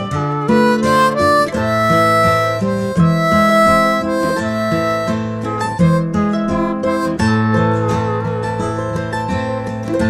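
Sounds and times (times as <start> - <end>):
harp melody in A minor: 0.0 - 10.0.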